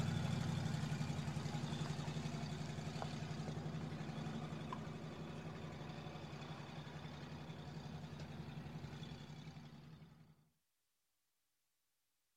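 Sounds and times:
bad car exhaust: 0.0s - 9.5s.

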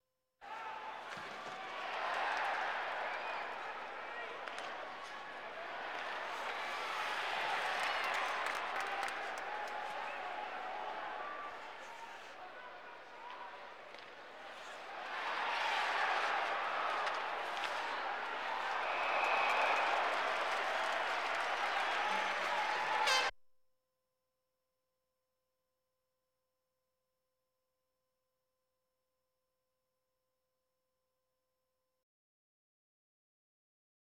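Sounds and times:
sports crowd: 0.4s - 23.3s.

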